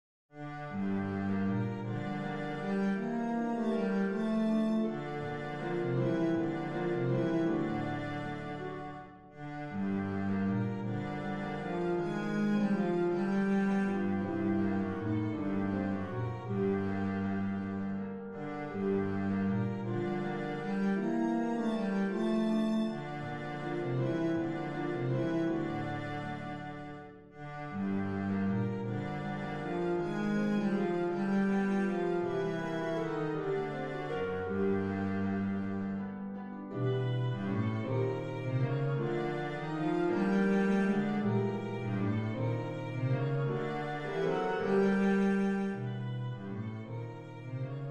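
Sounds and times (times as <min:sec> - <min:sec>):
string bass playing a sicilienne: 0:00.4 - 0:47.8.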